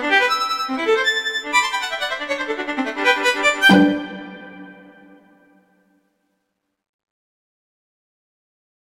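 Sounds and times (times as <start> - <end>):
arpeggio variation: 0.2 - 5.5.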